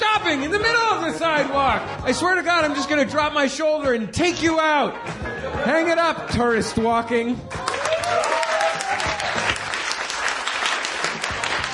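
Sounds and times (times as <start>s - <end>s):
speech: 0.3s - 7.7s
audience applause: 7.5s - 11.7s.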